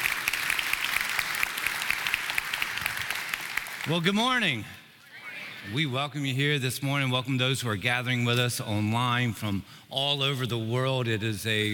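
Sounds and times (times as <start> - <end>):
audience applauding: 0.0 - 4.1
speech: 3.8 - 4.8, 5.6 - 11.7.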